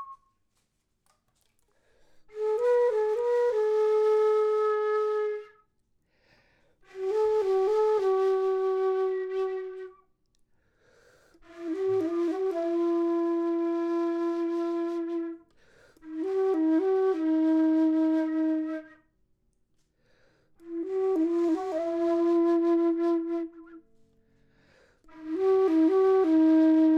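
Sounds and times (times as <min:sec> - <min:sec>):
low flute: 0:00.0 - 0:00.3, 0:02.3 - 0:05.7, 0:06.8 - 0:10.1, 0:11.3 - 0:19.2, 0:20.6 - 0:24.2, 0:25.0 - 0:26.9.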